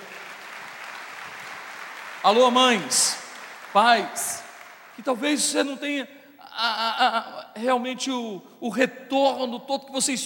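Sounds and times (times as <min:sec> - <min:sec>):
audience applauding: 0:00.0 - 0:05.5
speech: 0:02.2 - 0:04.4, 0:05.0 - 0:10.2.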